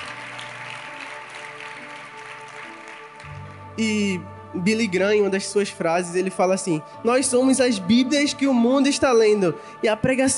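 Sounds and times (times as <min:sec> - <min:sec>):
audience applause: 0:00.0 - 0:03.6
speech: 0:03.8 - 0:10.3.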